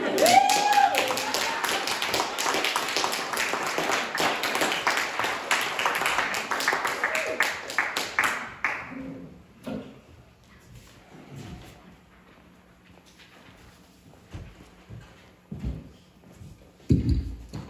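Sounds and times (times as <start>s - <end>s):
small group clapping: 0.0s - 9.1s
high whoop or whistle: 0.2s - 1.8s.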